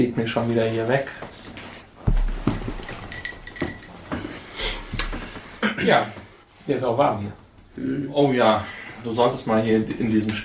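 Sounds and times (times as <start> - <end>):
speech: 0.0 - 1.5, 5.8 - 10.4
soft thuds and handling noise: 1.1 - 6.4
glass clinking while getting a drink: 2.1 - 4.5.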